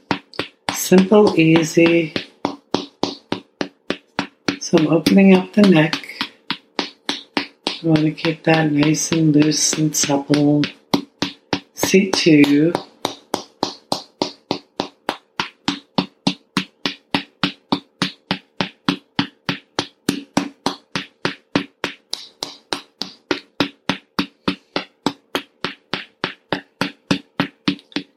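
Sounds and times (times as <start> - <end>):
finger tapping on GB13 and GB14 acupressure points on the head: 0.0 - 28.1
speech: 0.9 - 2.2, 4.7 - 6.0, 7.8 - 10.8, 11.9 - 12.9.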